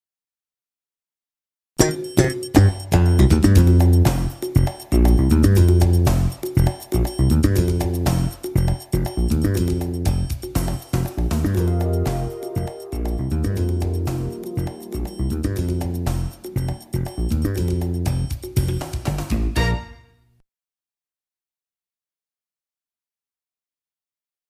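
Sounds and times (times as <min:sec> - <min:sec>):
game show back from commercial music: 0:01.8 - 0:20.0.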